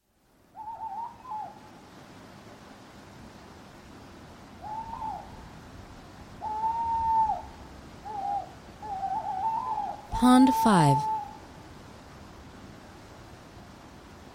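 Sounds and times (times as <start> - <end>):
owl hooting: 0.6 - 1.6, 4.6 - 5.3, 6.4 - 10.0
speech: 10.2 - 11.1.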